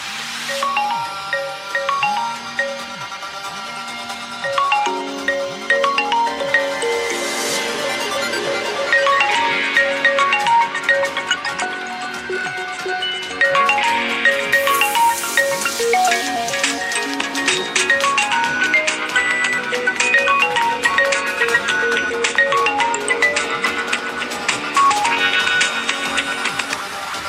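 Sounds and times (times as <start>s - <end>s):
Vivo Y51a ringtone: 0.5s - 3.4s, 4.4s - 26.3s.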